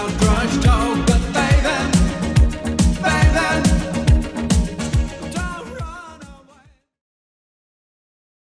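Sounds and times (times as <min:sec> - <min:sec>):
1980s style beat at 140 bpm: 0:00.0 - 0:06.7.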